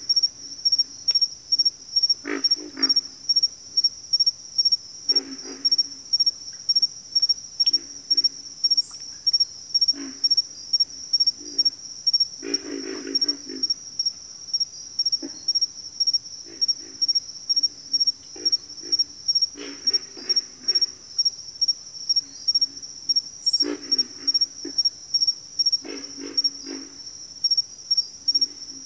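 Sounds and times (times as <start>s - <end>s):
high insect trill: 0.0s - 28.8s
pig frog grunts: 1.6s - 3.5s, 5.1s - 6.3s, 7.6s - 14.1s, 15.1s - 15.7s, 16.4s - 21.3s, 22.2s - 27.6s.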